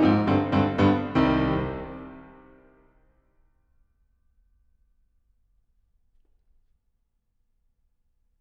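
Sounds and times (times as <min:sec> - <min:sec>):
piano piece: 0:00.0 - 0:02.9.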